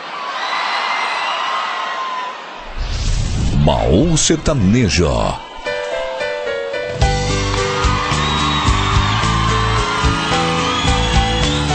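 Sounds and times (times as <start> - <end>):
crowd shouting and whooping: 0.0 - 2.9, 4.3 - 6.1, 7.1 - 11.7
low rumbling: 2.6 - 4.6
speech: 3.7 - 5.4.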